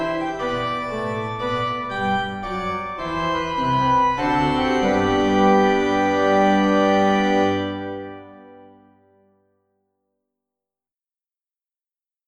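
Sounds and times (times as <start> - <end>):
organ piece in G major: 0.0 - 9.2.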